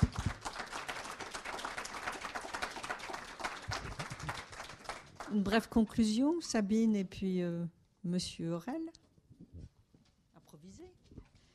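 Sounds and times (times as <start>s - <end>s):
audience applause: 0.0s - 5.4s
speech: 5.3s - 9.0s.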